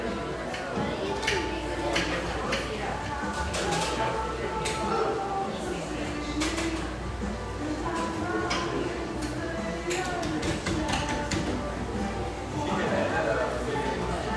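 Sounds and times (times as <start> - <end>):
cafe chatter in an industrial-style cafe in Portland's Grant Park: 0.0 - 14.3.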